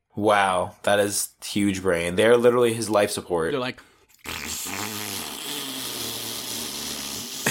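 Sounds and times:
speech: 0.2 - 4.8
mouth imitation of a deflating balloon fart: 4.1 - 7.4.

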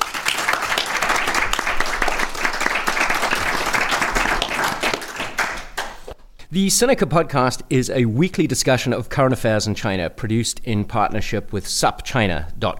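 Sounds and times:
audience applause thanking their hosts: 0.0 - 6.1
speech: 6.5 - 12.7.

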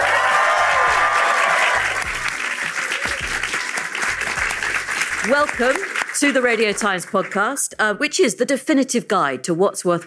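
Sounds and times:
raised cheering voices of festival crowd: 0.0 - 4.2
festival crowd clapping at BFI and Radio Times Television Festival, South Bank, London: 0.0 - 7.6
speech: 5.3 - 10.0.

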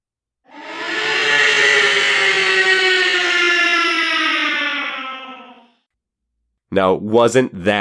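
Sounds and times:
monster roar built from an effects-processed scream: 0.5 - 5.7
speech: 6.8 - 7.7.

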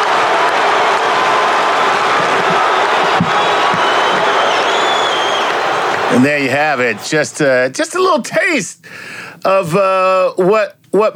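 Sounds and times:
basketball arena crowd cheering: 0.0 - 7.9
speech: 6.1 - 11.1.

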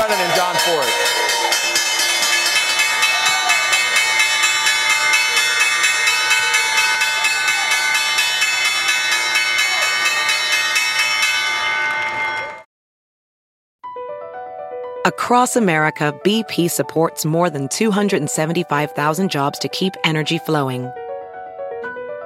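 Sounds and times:
stock exchange closing bell: 0.0 - 12.6
speech: 15.3 - 21.0.

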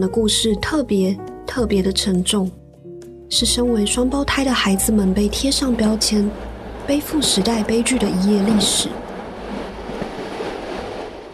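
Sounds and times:
speech: 0.0 - 2.6, 3.3 - 9.0
train slowly arriving at Auschwitz: 4.5 - 11.3.

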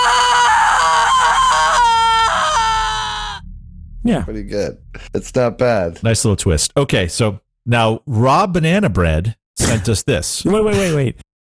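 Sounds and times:
screams: 0.0 - 3.5
speech: 4.0 - 11.5.

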